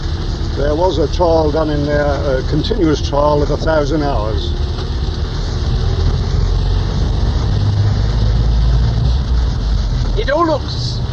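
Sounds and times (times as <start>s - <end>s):
car driving around a former defence test site: 0.0s - 11.1s
speech: 0.6s - 4.9s, 10.3s - 11.0s.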